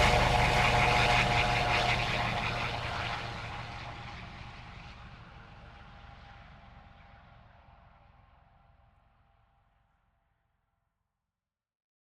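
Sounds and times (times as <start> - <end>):
HH-65 Dolphin helicopter taking off: 0.0 - 6.9.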